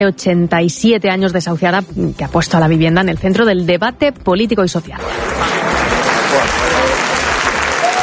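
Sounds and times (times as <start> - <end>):
speech: 0.0 - 6.6
marching protesters applauding: 5.0 - 8.0.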